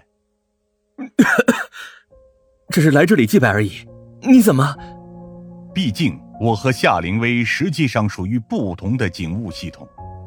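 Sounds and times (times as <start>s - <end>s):
person coughing: 1.0s - 2.0s
speech: 1.1s - 1.9s, 2.7s - 5.0s, 5.8s - 10.1s.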